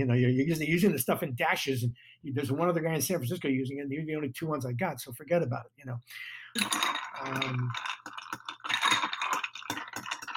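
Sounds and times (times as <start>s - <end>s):
speech: 0.0s - 8.4s
ice clinking against glass while stirring a cocktail: 6.6s - 10.3s.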